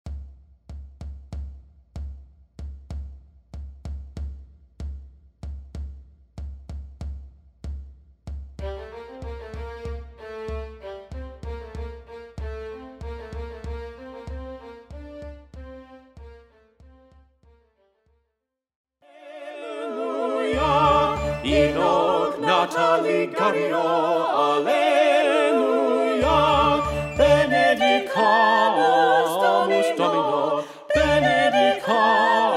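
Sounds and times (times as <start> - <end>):
four-part SATB vocal ensemble: 19.1 - 32.5.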